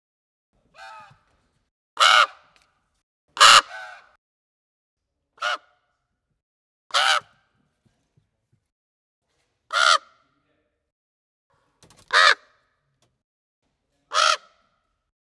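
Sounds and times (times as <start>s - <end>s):
raven cawing: 2.0s - 2.5s, 3.4s - 4.2s, 6.9s - 7.4s, 9.7s - 10.2s, 12.1s - 12.6s, 14.1s - 14.7s.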